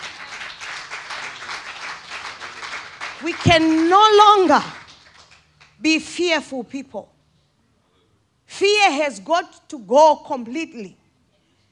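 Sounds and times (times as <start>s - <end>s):
church audience applause: 0.0s - 5.8s
speech: 3.2s - 4.8s, 5.8s - 7.1s, 8.6s - 11.0s.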